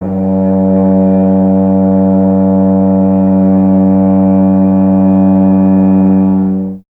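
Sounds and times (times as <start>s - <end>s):
tuba solo: 0.0s - 6.8s.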